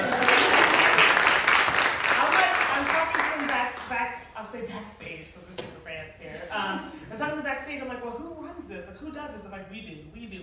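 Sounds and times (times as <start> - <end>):
audience applause: 0.0 - 3.8.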